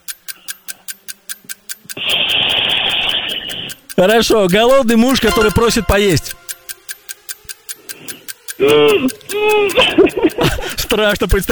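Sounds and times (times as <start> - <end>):
person imitating a boiling kettle: 2.0 - 3.7, 8.6 - 11.4
speech: 4.0 - 6.4, 8.6 - 11.4.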